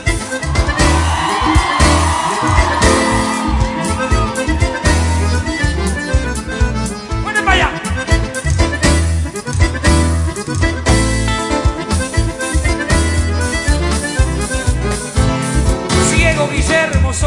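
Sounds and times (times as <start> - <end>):
accordion playing: 0.0 - 17.2
crowd shouting and whooping: 0.2 - 6.3.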